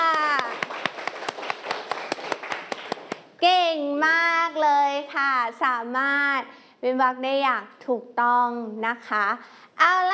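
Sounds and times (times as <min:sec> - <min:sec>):
children clapping for themselves: 0:00.0 - 0:03.3
speech: 0:03.4 - 0:04.2, 0:05.0 - 0:10.1.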